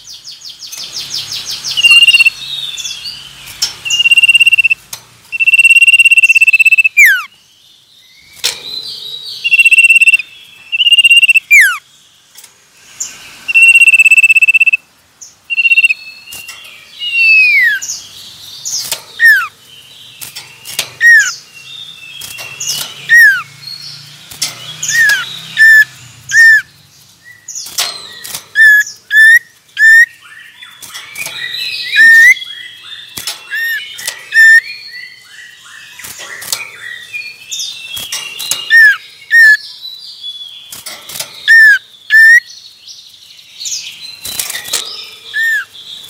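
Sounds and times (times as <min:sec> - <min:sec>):
common iora singing: 0:01.7 - 0:02.4, 0:03.9 - 0:07.3, 0:09.4 - 0:11.8, 0:13.5 - 0:14.8, 0:15.5 - 0:16.0, 0:17.0 - 0:17.9, 0:19.2 - 0:19.5, 0:21.0 - 0:21.4, 0:23.0 - 0:23.5, 0:24.9 - 0:26.7, 0:28.6 - 0:30.2, 0:31.5 - 0:32.9, 0:33.5 - 0:35.3, 0:38.7 - 0:39.6, 0:41.5 - 0:42.5.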